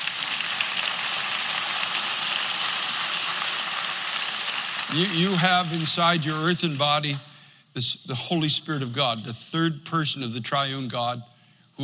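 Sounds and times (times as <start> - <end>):
audience clapping: 0.0 - 7.2
speech: 4.9 - 11.8.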